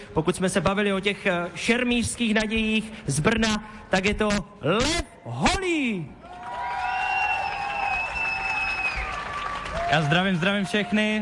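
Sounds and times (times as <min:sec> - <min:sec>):
speech: 0:00.1 - 0:06.2, 0:09.9 - 0:11.2
crowd applause: 0:06.2 - 0:11.2.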